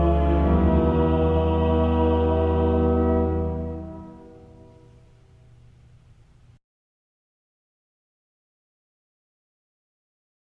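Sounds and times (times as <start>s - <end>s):
gospel acclamation singing: 0.0s - 4.7s.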